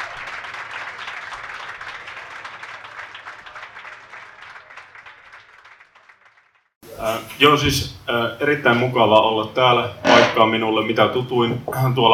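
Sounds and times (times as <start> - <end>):
audience applause: 0.0 - 6.7
speech: 7.0 - 12.1.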